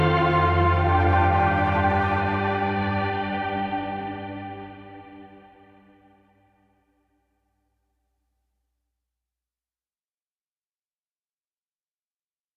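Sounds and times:
ambient music: 0:00.0 - 0:06.6.

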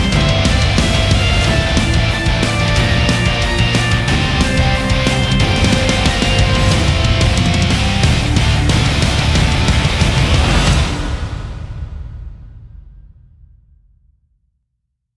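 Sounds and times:
speed metal band playing: 0:00.0 - 0:11.9.

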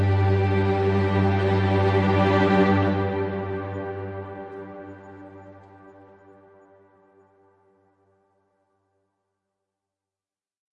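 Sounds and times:
ambient music: 0:00.0 - 0:07.7.

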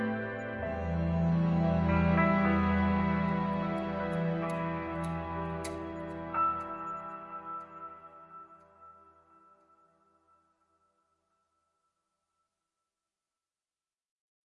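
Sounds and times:
grief ambient music: 0:00.0 - 0:10.9.

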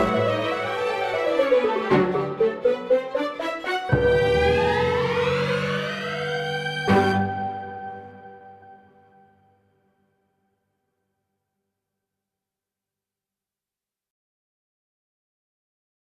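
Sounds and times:
slippery ambient music: 0:00.0 - 0:09.9.

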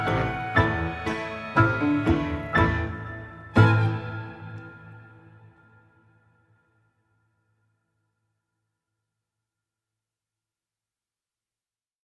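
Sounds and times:
stoned ambient music: 0:00.0 - 0:07.2.

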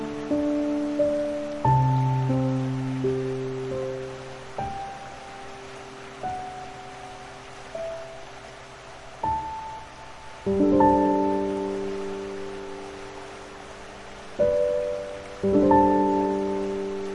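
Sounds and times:
piano: 0:00.0 - 0:17.1
streaming water: 0:00.0 - 0:17.1.

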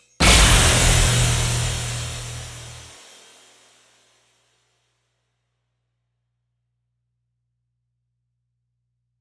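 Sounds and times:
storm: 0:00.2 - 0:03.2.

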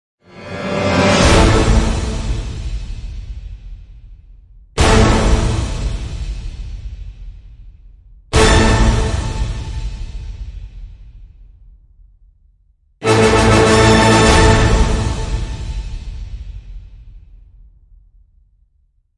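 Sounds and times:
orchestral end hits: 0:00.3 - 0:03.0, 0:04.8 - 0:06.2, 0:08.4 - 0:10.1, 0:13.0 - 0:16.2.

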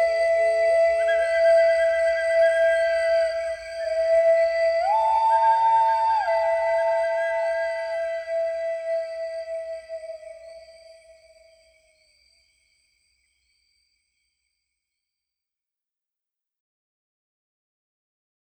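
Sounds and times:
Native American flute music: 0:00.0 - 0:11.6
crickets chirping at dusk: 0:00.0 - 0:15.2.

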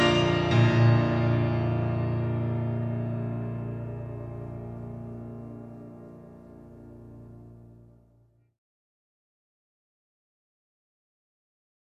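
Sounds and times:
old time gospel piano: 0:00.0 - 0:08.0.

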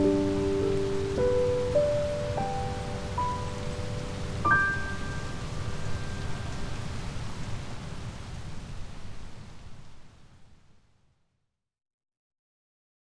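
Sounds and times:
piano: 0:00.0 - 0:07.3
rain: 0:00.0 - 0:11.2.

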